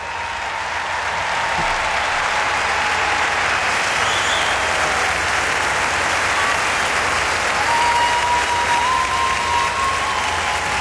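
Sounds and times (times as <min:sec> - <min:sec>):
faint cheers and whistles: 0:00.0 - 0:05.3, 0:06.2 - 0:10.7
huge arena crowd applauding in a standing ovation: 0:00.0 - 0:10.7.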